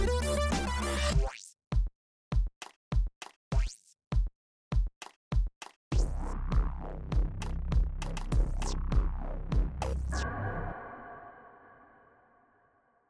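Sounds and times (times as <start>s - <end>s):
drums: 0.0s - 10.0s.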